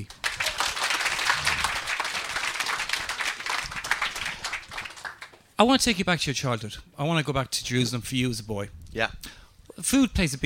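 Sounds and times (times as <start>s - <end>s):
crowd applauding: 0.0s - 5.5s
speech: 5.6s - 10.4s.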